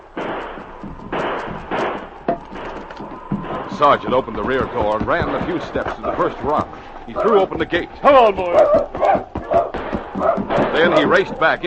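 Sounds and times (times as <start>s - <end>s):
gunfire at the edge of the woods: 0.0s - 6.6s, 7.2s - 11.6s
speech: 3.8s - 9.3s, 10.8s - 11.6s.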